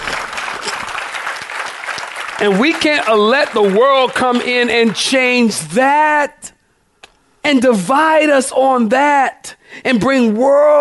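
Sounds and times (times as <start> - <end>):
audience clapping: 0.0 - 5.7
speech: 2.4 - 6.5, 7.4 - 10.7.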